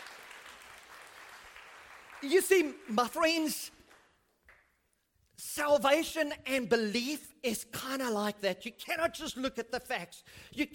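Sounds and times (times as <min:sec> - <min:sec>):
audience applause: 0:00.0 - 0:02.9
speech: 0:02.2 - 0:03.8, 0:05.5 - 0:10.7.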